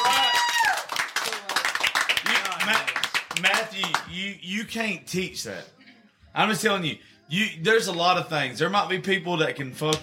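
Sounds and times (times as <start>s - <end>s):
rising then falling whoop: 0.0s - 0.9s
crowd applause: 0.0s - 4.0s
speech: 2.7s - 10.0s.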